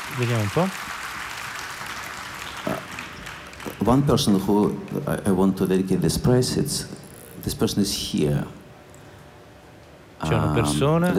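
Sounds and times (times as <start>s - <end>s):
audience applause at a prize ceremony: 0.0s - 4.4s
speech: 0.2s - 1.0s, 3.9s - 8.6s, 10.2s - 11.1s.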